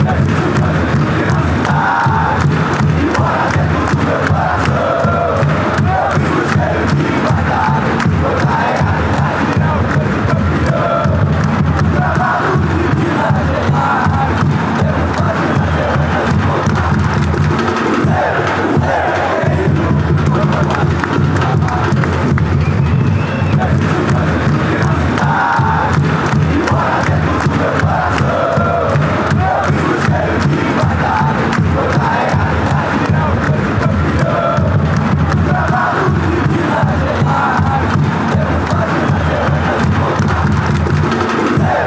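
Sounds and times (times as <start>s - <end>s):
fans chanting an anthem: 0.0s - 41.8s.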